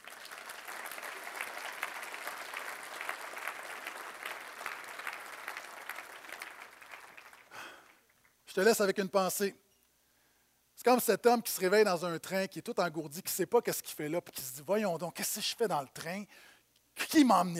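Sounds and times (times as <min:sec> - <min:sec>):
audience applause: 0:00.0 - 0:08.1
speech: 0:08.5 - 0:09.6, 0:10.8 - 0:17.5.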